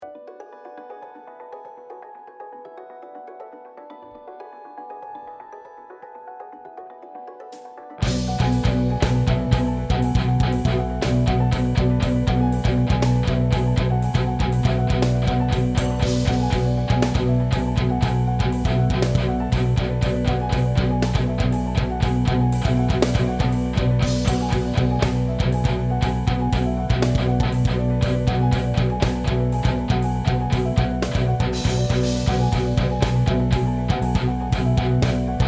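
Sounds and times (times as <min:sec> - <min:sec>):
rhythm: 0:07.2 - 0:35.4.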